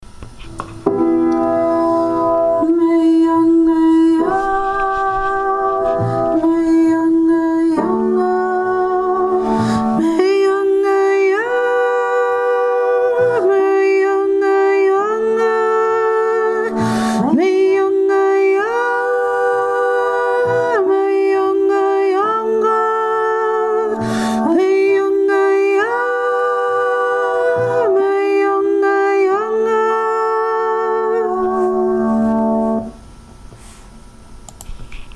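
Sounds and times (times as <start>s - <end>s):
upper voice singing archaic chant: 1.6s - 33.0s.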